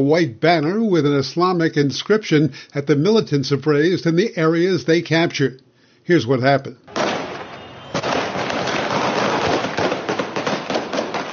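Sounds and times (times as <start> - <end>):
speech: 0.0 - 7.0
Taliban gunfire into the air: 6.9 - 11.3.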